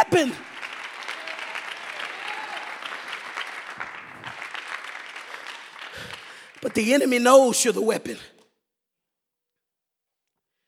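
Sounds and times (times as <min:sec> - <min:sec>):
audience clapping hands: 0:00.0 - 0:08.4
speech: 0:00.1 - 0:00.5, 0:06.6 - 0:08.3.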